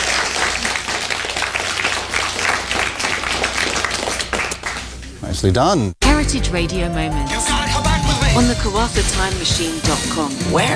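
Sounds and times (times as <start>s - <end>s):
round of applause: 0.0s - 4.9s
speech: 5.3s - 10.7s.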